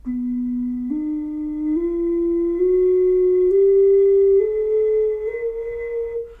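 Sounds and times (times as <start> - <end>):
ocarina: 0.0 - 6.3.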